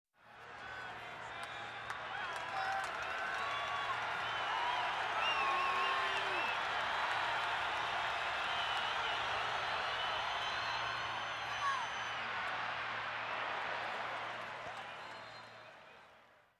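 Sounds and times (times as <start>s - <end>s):
excited football crowd in a sports arena: 0.2s - 16.5s.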